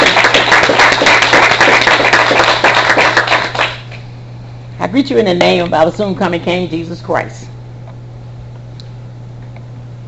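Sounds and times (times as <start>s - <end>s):
audience hand clapping: 0.0s - 4.0s
speech: 4.9s - 7.5s.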